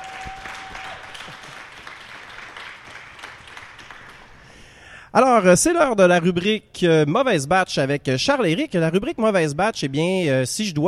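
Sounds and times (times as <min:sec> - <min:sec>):
audience applauding the musicians: 0:00.0 - 0:04.5
speech: 0:05.2 - 0:10.8.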